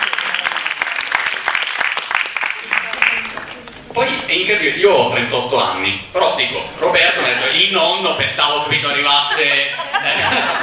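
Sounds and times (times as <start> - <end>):
applause: 0.0 - 3.8
speech: 4.0 - 10.6
laughter: 9.0 - 10.6.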